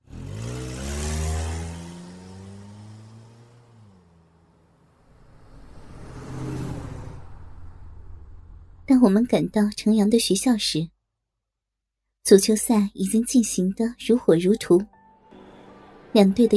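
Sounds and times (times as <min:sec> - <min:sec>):
car starting and speeding out of a car park: 0:00.0 - 0:08.9
speech: 0:08.9 - 0:10.9, 0:12.2 - 0:14.9, 0:16.1 - 0:16.5.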